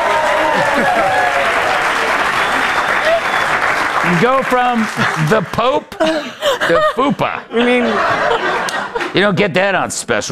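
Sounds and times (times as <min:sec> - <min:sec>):
audience applause: 0:00.0 - 0:05.8
laughter: 0:00.4 - 0:02.8, 0:04.1 - 0:09.4
speech: 0:00.8 - 0:01.1, 0:04.1 - 0:10.3.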